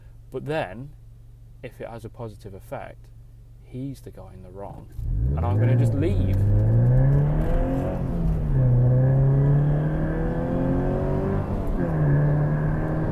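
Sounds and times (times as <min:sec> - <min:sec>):
speech: 0:00.3 - 0:01.0, 0:01.6 - 0:07.6
car engine accelerating hard with gear changes: 0:04.9 - 0:13.1.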